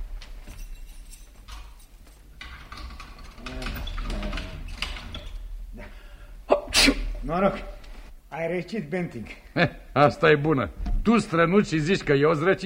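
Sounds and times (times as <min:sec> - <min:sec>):
key turning in a door lock: 0:00.2 - 0:05.4
speech: 0:07.3 - 0:07.8, 0:08.4 - 0:12.6.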